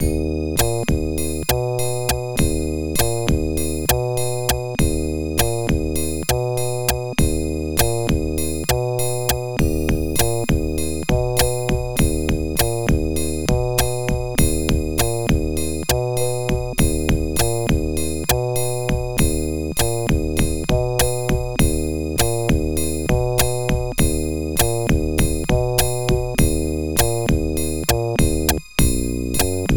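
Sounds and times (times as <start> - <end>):
OPL3 FM synthesizer music: 0.0 - 29.7.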